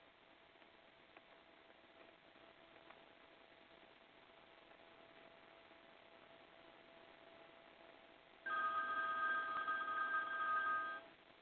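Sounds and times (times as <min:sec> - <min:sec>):
telephone ringing: 0:08.5 - 0:11.1.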